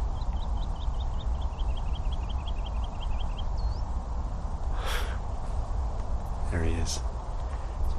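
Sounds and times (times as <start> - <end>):
woodlark singing: 0.0 - 4.0
steady hiss: 0.0 - 7.9.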